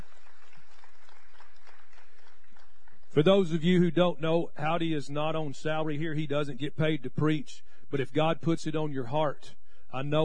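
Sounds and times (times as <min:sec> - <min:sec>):
audience applause: 0:00.0 - 0:03.2
speech: 0:03.2 - 0:10.2.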